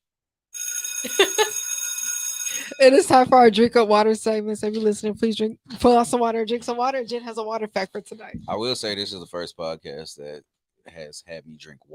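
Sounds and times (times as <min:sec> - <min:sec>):
bell ringing: 0:00.6 - 0:03.2
speech: 0:01.0 - 0:01.7, 0:02.8 - 0:11.9.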